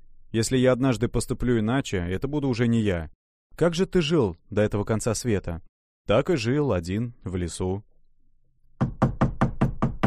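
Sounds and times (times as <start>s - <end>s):
speech: 0.3s - 7.9s
knocking on a wooden door: 8.8s - 10.0s.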